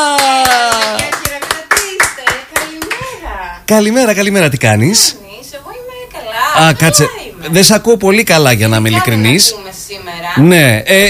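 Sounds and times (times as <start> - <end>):
applause: 0.0 - 3.1
speech: 3.7 - 5.4, 6.6 - 11.0.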